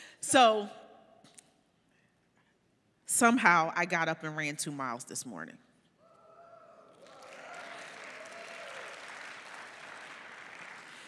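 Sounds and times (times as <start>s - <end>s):
speech: 0.2s - 0.8s, 3.2s - 5.6s
audience clapping: 6.8s - 11.0s.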